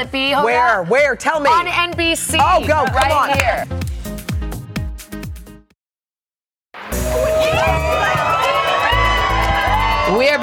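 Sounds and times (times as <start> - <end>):
speech: 0.0 - 3.8, 10.1 - 10.4
outdoor crowd cheering: 6.8 - 10.4.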